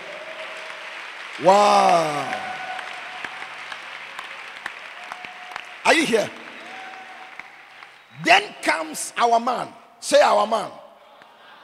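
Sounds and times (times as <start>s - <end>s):
audience clapping: 0.0s - 8.9s
speech: 1.4s - 2.5s, 5.9s - 6.4s, 8.2s - 10.8s.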